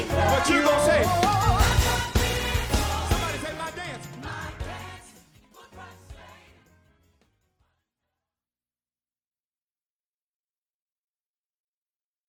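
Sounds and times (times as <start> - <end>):
victory chant: 0.0 - 6.7.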